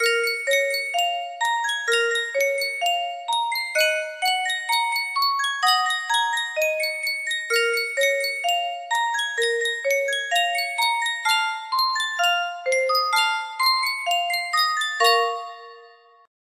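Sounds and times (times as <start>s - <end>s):
Yunsheng custom tune music box: 0.0s - 16.3s.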